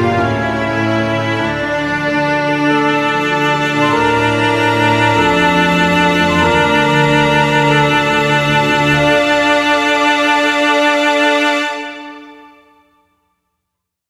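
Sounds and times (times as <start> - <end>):
campaign music: 0.0 - 10.8.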